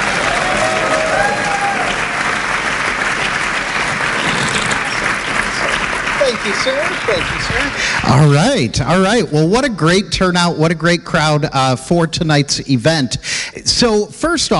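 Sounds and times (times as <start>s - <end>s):
faint whoops and cheers: 0.0s - 2.5s
audience applause welcoming a speaker: 0.0s - 9.2s
speech: 6.4s - 14.5s.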